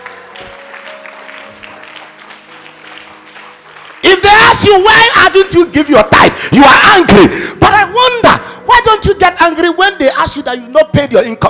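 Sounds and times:
crowd clapping: 0.0s - 6.0s
speech: 4.1s - 11.4s.

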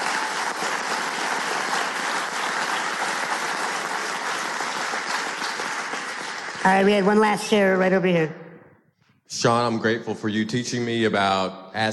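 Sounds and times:
audience round of applause: 0.0s - 7.2s
speech: 6.6s - 8.4s, 9.3s - 11.9s.

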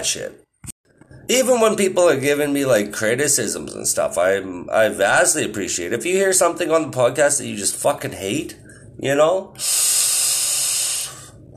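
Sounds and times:
speech: 0.0s - 0.4s, 1.3s - 10.1s
vape exhale hiss: 9.6s - 11.4s.

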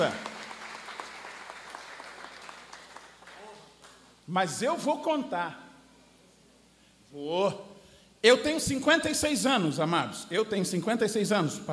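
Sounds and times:
speech: 0.0s - 0.2s, 4.3s - 5.6s, 7.1s - 11.7s
crowd applause: 0.0s - 4.0s.

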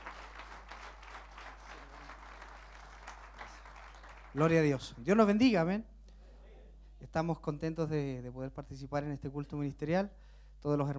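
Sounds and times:
audience applause: 0.0s - 4.8s
speech: 4.4s - 5.9s, 7.1s - 10.9s.

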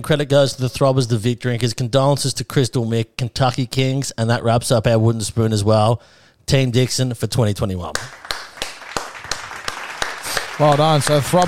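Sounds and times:
speech: 0.0s - 8.2s, 10.6s - 11.4s
hand claps: 7.9s - 11.4s.

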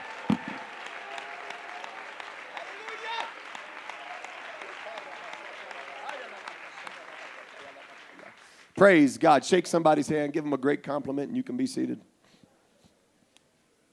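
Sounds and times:
people shouting praise: 0.0s - 7.2s
audience clapping hands: 0.0s - 9.1s
speech: 8.8s - 12.1s.

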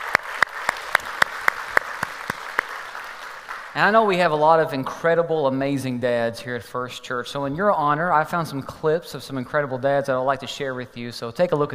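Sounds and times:
audience applauding to welcome fathers on Father's Day: 0.0s - 4.4s
speech: 3.8s - 11.7s.

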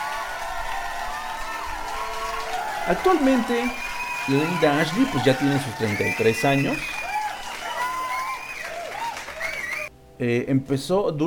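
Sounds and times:
applause: 0.0s - 9.9s
cheering: 0.0s - 9.9s
speech: 2.9s - 7.0s, 10.2s - 11.2s.

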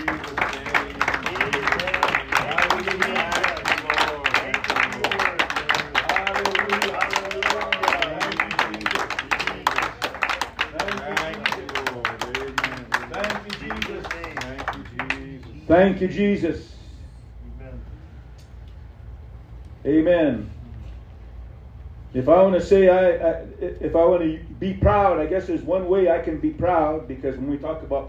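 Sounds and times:
audience clapping hands: 0.0s - 15.7s
speech: 15.8s - 16.7s, 19.9s - 20.5s, 22.2s - 28.0s.

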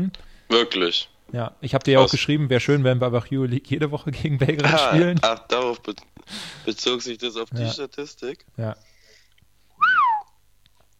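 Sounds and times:
speech: 0.0s - 8.9s
whistle into microphone: 9.8s - 10.4s.

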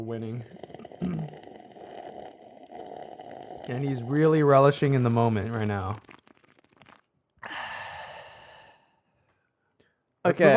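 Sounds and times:
speech: 0.0s - 1.5s, 3.7s - 6.1s, 10.2s - 10.5s
person slurping a drink: 0.2s - 7.1s.

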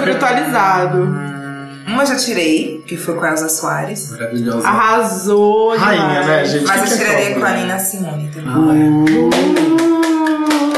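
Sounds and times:
speech: 0.3s - 1.4s, 2.0s - 9.9s
audience clapping: 9.0s - 10.7s.

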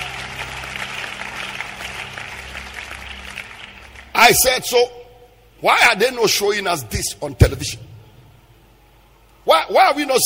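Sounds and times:
audience clapping: 0.0s - 4.6s
speech: 4.3s - 5.0s, 5.6s - 7.9s, 9.6s - 10.2s.

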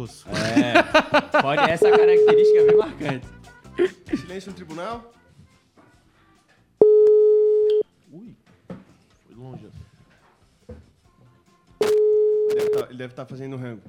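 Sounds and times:
speech: 0.0s - 5.2s, 8.1s - 8.5s, 9.4s - 9.9s, 12.5s - 13.8s
laughter: 0.3s - 4.5s
telephone call ringing tone: 1.8s - 2.9s, 6.8s - 7.8s, 11.8s - 12.8s.

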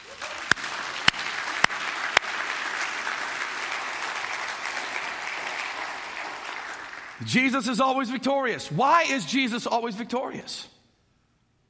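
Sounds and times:
audience clapping: 0.0s - 7.6s
speech: 7.2s - 10.7s.

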